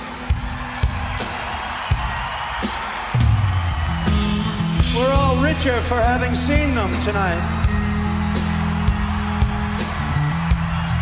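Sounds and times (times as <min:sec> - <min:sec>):
audience applause: 0:00.0 - 0:11.0
speech: 0:05.5 - 0:07.6.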